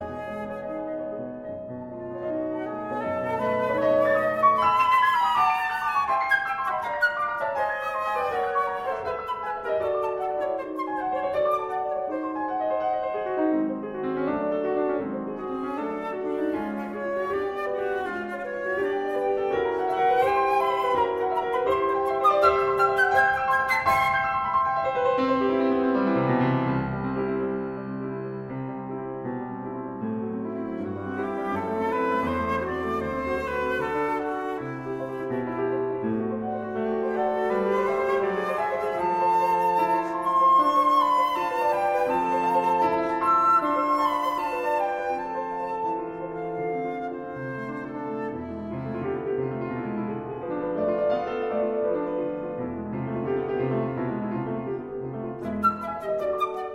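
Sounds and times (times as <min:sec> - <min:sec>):
flute playing a fast scherzo: 0:00.0 - 0:29.3, 0:30.4 - 0:50.5, 0:54.7 - 0:56.7
piano playing a fast scherzo: 0:00.0 - 0:56.7.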